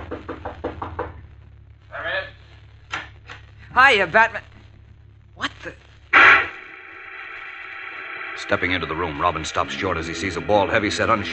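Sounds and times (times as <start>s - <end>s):
knocking on a wooden door: 0.0s - 1.2s
speech: 3.8s - 4.5s, 5.6s - 5.8s, 8.5s - 11.3s.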